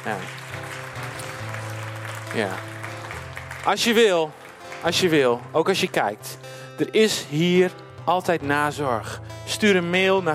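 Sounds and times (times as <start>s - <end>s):
speech: 0.0s - 0.6s, 2.3s - 2.7s, 3.6s - 10.3s
audience applause: 0.0s - 6.2s.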